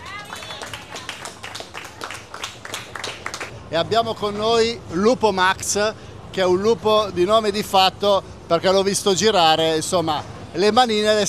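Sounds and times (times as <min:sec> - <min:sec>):
audience applause: 0:00.0 - 0:03.5
speech: 0:03.7 - 0:11.2.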